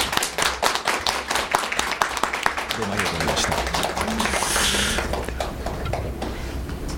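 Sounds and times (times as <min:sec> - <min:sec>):
audience applause: 0:00.0 - 0:06.8
speech: 0:02.8 - 0:04.4.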